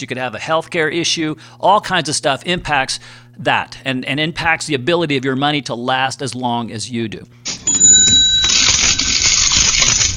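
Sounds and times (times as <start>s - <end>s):
speech: 0.0s - 7.6s
cash register ringing: 7.5s - 10.0s.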